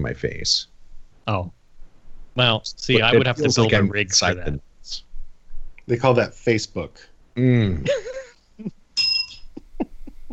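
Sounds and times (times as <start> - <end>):
speech: 0.0 - 0.7, 1.3 - 1.6, 2.4 - 5.1, 5.9 - 8.8
small bell being dinged: 9.0 - 9.5.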